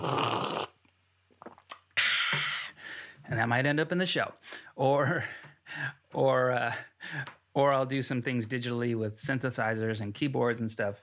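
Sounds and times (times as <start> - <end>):
mouth-made imitation of someone drinking coffee: 0.0 - 0.9
speech: 3.3 - 11.0.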